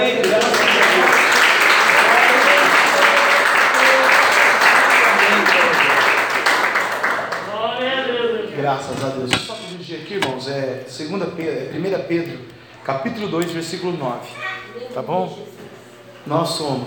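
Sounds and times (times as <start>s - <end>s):
audience applause: 0.0s - 7.6s
speech: 8.8s - 15.6s, 16.2s - 16.8s.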